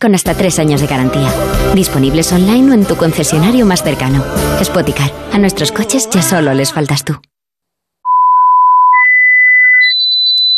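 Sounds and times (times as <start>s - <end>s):
speech: 0.0s - 7.3s
high-pitched ear-ringing electronic beep tone: 8.1s - 10.5s.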